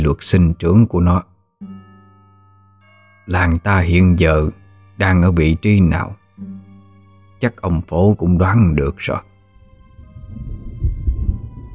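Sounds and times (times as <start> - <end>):
speech: 0.1 - 1.3, 3.3 - 6.5, 7.4 - 9.3
rumbling thunder: 9.8 - 11.7.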